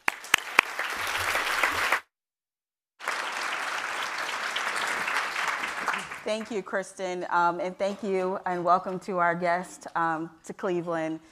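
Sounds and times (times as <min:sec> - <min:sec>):
audience clapping at a City Club of Cleveland library program: 0:00.0 - 0:02.1, 0:03.0 - 0:06.6
speech: 0:06.3 - 0:11.2.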